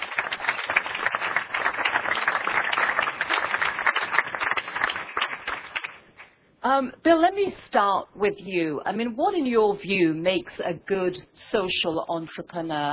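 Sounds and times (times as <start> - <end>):
audience applause: 0.0 - 6.1
speech: 6.6 - 12.9.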